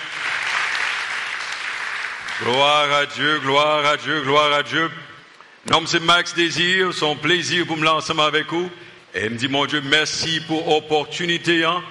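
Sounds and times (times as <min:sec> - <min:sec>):
audience applauding: 0:00.0 - 0:03.5
speech: 0:02.4 - 0:11.8.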